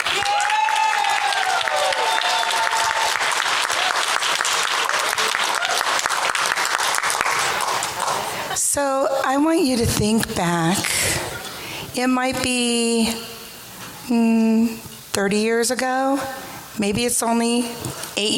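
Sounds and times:
audience applause: 0.0s - 8.6s
speech: 8.8s - 11.2s, 12.0s - 13.3s, 14.1s - 18.3s.

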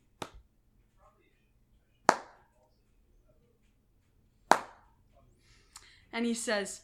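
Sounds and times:
hand clapping: 0.2s - 0.4s, 2.1s - 2.6s, 4.5s - 4.9s
speech: 6.2s - 6.8s.

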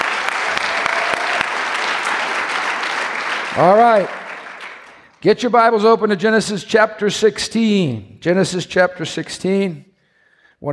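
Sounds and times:
church audience applause for children's ministry workers: 0.0s - 5.2s
sharp individual claps: 0.0s - 5.2s
speech: 3.6s - 4.2s, 5.2s - 9.9s, 10.6s - 10.7s.

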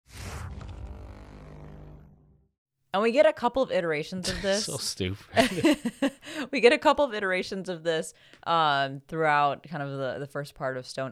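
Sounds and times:
cartoonish fart sound effect: 0.0s - 2.5s
speech: 2.9s - 11.1s
laughter: 4.2s - 6.4s.

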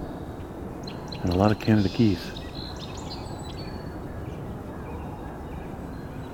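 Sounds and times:
distant sandhill crane calls: 0.0s - 6.3s
speech: 1.2s - 2.3s.

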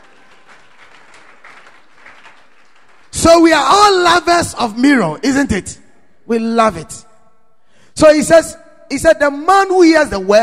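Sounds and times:
audience applause: 0.0s - 3.1s
speech: 3.2s - 7.0s, 8.0s - 10.4s.

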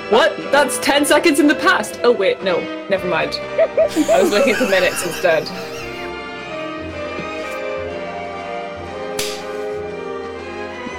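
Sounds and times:
speech: 0.1s - 5.8s
laughter: 3.6s - 6.1s
hand clap: 9.2s - 9.5s.

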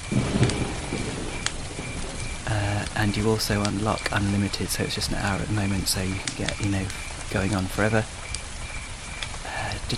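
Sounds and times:
low rolling thunder: 0.0s - 7.3s
crickets chirring: 0.0s - 9.9s
sharp crackle: 0.0s - 9.9s
steady hiss like rain: 0.0s - 9.9s
speech: 2.9s - 8.2s.

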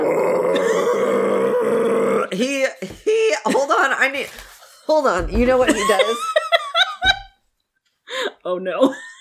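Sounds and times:
imitated death-metal style scream: 0.0s - 2.5s
speech: 2.4s - 6.3s, 8.4s - 9.1s.

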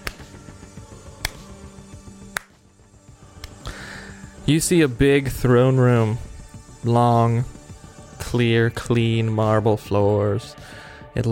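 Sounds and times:
slow clap: 0.0s - 0.5s, 1.2s - 1.6s, 2.3s - 2.6s, 3.4s - 3.7s
low music: 0.0s - 11.3s
speech: 4.5s - 7.5s, 8.3s - 11.3s.

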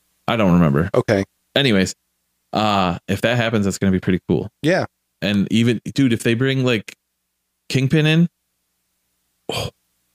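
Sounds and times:
speech: 0.3s - 7.0s, 7.7s - 8.4s, 9.5s - 9.8s
short breathy yawn: 9.5s - 9.8s.

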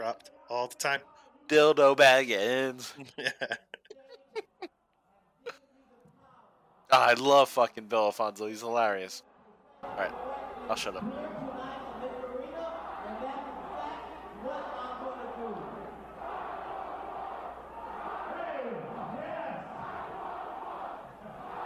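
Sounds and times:
speech: 0.1s - 3.8s, 6.9s - 11.4s
laughter: 2.8s - 4.8s
large arena wrestling crowd chanting in unison: 9.2s - 21.6s.

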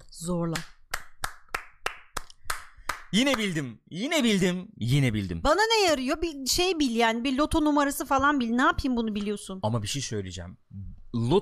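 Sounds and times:
speech: 0.2s - 0.8s, 3.1s - 11.4s
clapping: 0.6s - 3.6s.

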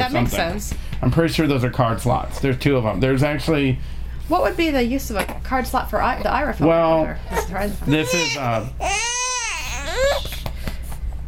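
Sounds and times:
speech: 0.1s - 9.1s
baby fussing and crying during burping: 7.3s - 10.5s.

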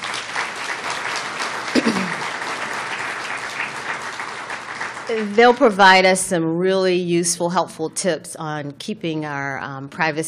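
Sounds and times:
audience applause welcoming a panel at a talk on cybersecurity: 0.0s - 5.8s
speech: 5.1s - 10.2s.

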